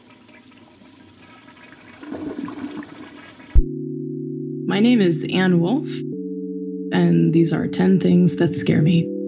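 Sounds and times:
toilet flushing: 0.0 - 3.6
speech: 4.7 - 6.1, 7.0 - 9.1.

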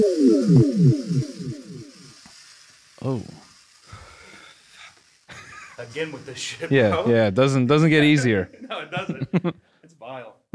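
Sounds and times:
speech: 0.0 - 1.6, 3.0 - 3.4, 5.8 - 10.5
sci-fi teleport beam effect of warbling downward-sweeping tones: 0.0 - 2.2
laughter: 5.3 - 7.1, 8.5 - 9.6.

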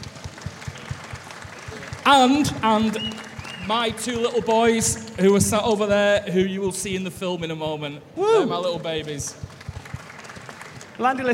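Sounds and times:
round of applause: 0.0 - 5.2, 9.0 - 11.3
speech: 2.0 - 9.4, 11.0 - 11.3.

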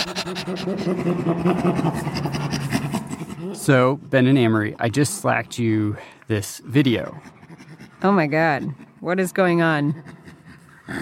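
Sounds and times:
person imitating a chimpanzee panting laugh: 0.0 - 3.6, 9.9 - 11.0
speech: 0.2 - 2.6, 3.5 - 7.4, 8.0 - 10.2.

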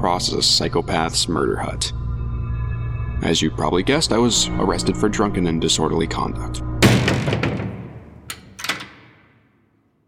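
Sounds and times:
speech: 0.0 - 2.0, 3.2 - 7.6
jail cell door slamming: 6.8 - 9.6
jail cell lock clacking: 6.8 - 9.6.

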